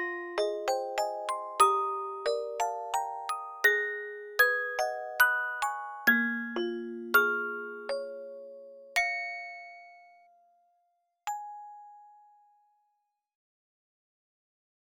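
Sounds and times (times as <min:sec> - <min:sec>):
music box melody: 0:00.0 - 0:10.3.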